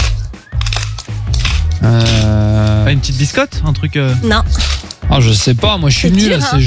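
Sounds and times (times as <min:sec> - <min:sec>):
pepper mill being turned: 0:00.0 - 0:03.0, 0:04.4 - 0:06.6
speech: 0:01.8 - 0:02.2, 0:02.9 - 0:06.6.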